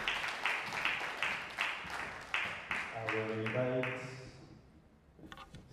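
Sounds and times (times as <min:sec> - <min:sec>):
church congregation clapping rhythmically: 0:00.0 - 0:04.4
speech: 0:03.1 - 0:04.1.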